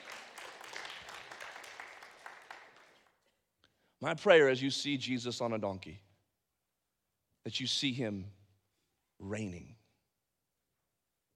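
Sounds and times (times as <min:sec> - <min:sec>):
audience clapping: 0:00.0 - 0:03.4
speech: 0:04.0 - 0:06.1, 0:07.4 - 0:08.4, 0:09.2 - 0:09.8.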